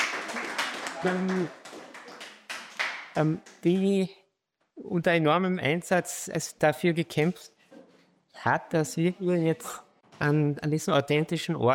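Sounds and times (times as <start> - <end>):
audience applause: 0.0 - 3.2
speech: 1.0 - 1.6, 3.2 - 4.2, 4.8 - 7.6, 8.4 - 11.7.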